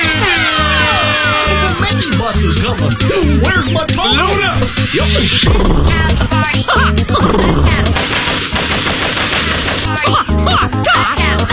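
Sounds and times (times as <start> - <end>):
bus horn honking a bouncy repeating tune: 0.0 - 1.8
speech: 2.3 - 9.0, 9.9 - 11.5.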